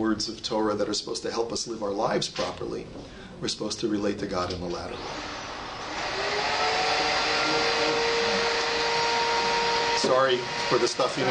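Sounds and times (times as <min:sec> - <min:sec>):
speech: 0:00.0 - 0:05.4, 0:10.0 - 0:11.3
vacuum cleaner run by cleaning staff: 0:04.9 - 0:11.3.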